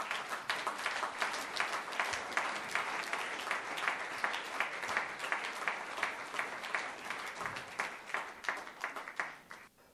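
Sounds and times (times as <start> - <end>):
audience applause for the band: 0.0 - 9.7.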